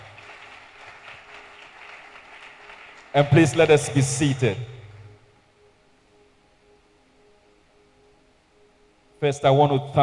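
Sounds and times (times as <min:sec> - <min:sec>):
audience clapping: 0:00.0 - 0:04.5
speech: 0:03.1 - 0:04.7, 0:09.2 - 0:10.0.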